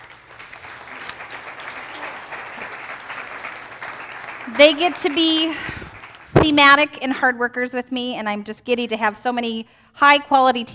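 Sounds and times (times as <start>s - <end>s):
audience applause: 0.0s - 6.3s
speech: 4.5s - 5.8s, 6.4s - 10.7s.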